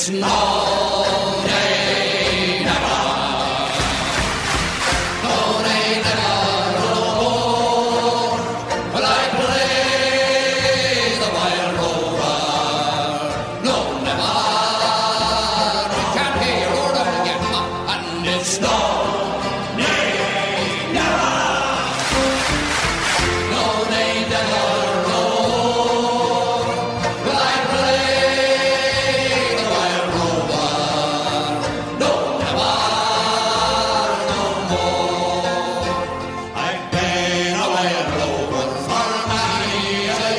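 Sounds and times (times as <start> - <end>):
speech: 0.0 - 1.3
folk song sung live with the audience joining in: 0.0 - 40.3.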